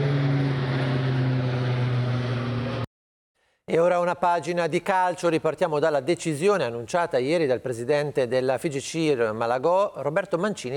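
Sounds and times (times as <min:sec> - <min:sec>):
Canadair firefighting planes flying: 0:00.0 - 0:02.9
speech: 0:03.7 - 0:10.7.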